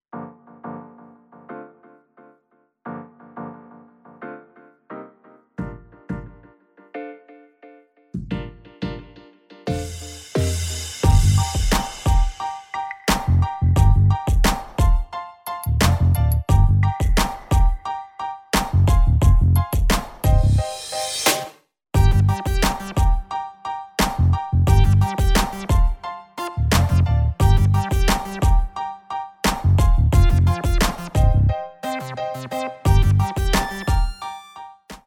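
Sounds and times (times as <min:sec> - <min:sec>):
hip hop playalong backing track: 0:08.2 - 0:18.0, 0:18.6 - 0:34.6.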